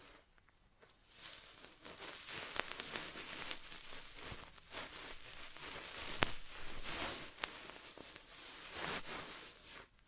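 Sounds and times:
rustling and scratching against the microphone in ASMR inner ear exam: 0.0 - 10.0.

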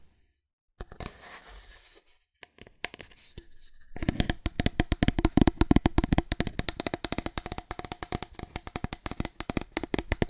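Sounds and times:
fast aggressive cardboard tapping: 4.0 - 10.2.

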